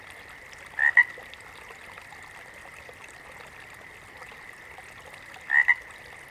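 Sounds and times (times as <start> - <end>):
water frog croaking: 0.8 - 1.2, 5.5 - 5.9.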